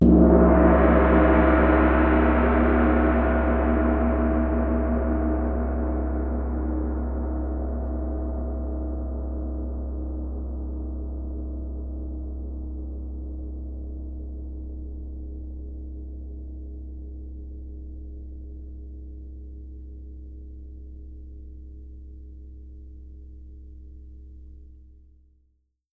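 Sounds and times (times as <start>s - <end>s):
big gong: 0.0s - 15.0s.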